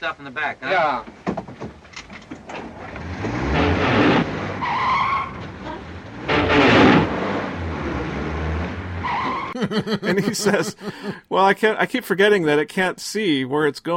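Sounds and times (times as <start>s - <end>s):
speech: 0.0s - 1.7s, 9.6s - 13.9s
car engine revving and roaring: 2.4s - 9.5s
tires skidding and squealing: 2.6s - 9.6s
laughter: 9.6s - 11.3s.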